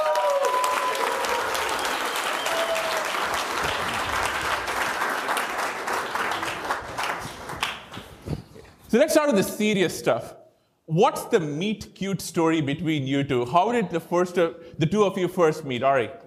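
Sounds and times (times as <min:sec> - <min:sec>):
event audience applause welcoming Marc Andreessen and Ari Emanuel: 0:00.0 - 0:08.3
speech: 0:08.9 - 0:16.2.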